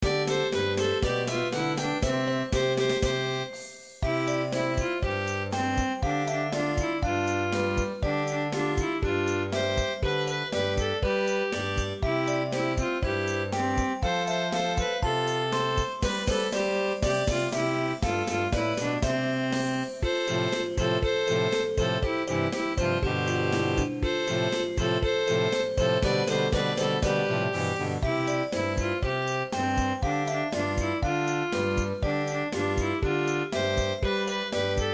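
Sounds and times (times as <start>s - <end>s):
song: 0.0s - 34.9s.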